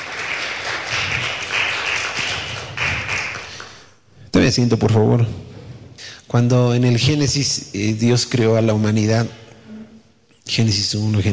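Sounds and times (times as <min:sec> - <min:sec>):
audience applauding: 0:00.0 - 0:03.9
speech: 0:04.4 - 0:05.5, 0:06.3 - 0:09.4, 0:10.5 - 0:11.3.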